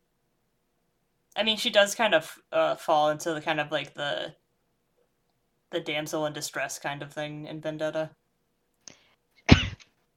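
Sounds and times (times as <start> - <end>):
speech: 1.4 - 4.4, 5.7 - 8.2
breath click: 8.8 - 9.2
cough: 9.5 - 9.9.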